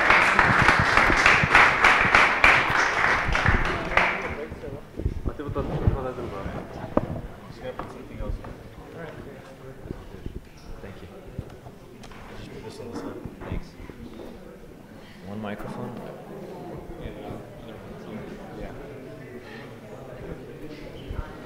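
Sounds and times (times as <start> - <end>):
audience applause: 0.0 - 4.6
murmuring voices: 0.0 - 21.4.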